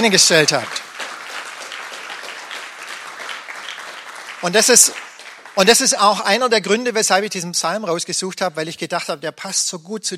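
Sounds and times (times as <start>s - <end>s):
speech: 0.0s - 0.9s, 4.4s - 5.0s, 5.6s - 10.1s
audience applause: 0.0s - 6.5s.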